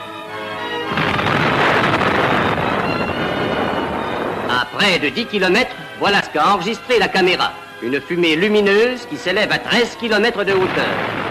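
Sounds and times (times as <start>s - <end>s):
sustained tonal passage: 0.8s - 6.0s
first atomic bomb test explosion in the New Mexico desert at night: 0.9s - 4.6s, 10.6s - 11.3s
speech: 4.8s - 11.2s.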